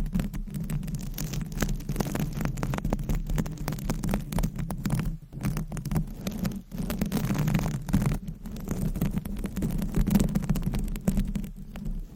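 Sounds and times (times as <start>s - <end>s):
scratching and tapping: 0.0s - 12.1s.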